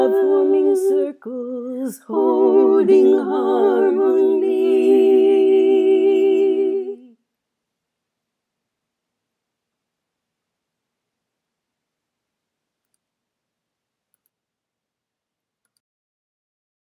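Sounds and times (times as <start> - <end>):
choir singing in harmony: 0.0 - 7.2.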